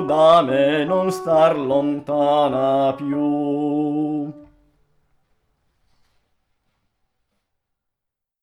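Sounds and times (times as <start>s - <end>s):
sopranos singing: 0.0s - 4.6s.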